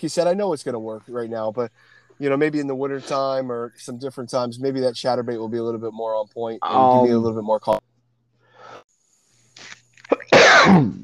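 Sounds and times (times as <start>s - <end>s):
speech: 0.0s - 7.9s, 10.6s - 11.0s
short breathy inhalations: 8.4s - 8.9s
person sneezing: 10.1s - 11.0s.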